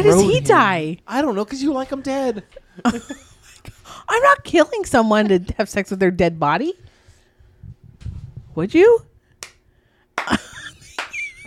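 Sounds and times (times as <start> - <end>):
speech: 0.0 - 6.9, 8.6 - 9.1
slow clap: 9.4 - 9.6, 10.2 - 11.4.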